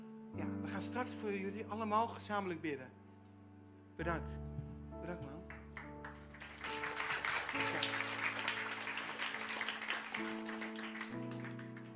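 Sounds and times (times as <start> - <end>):
speech: 0.4 - 3.0, 4.0 - 5.6, 10.2 - 10.5
audience clapping: 5.4 - 11.9.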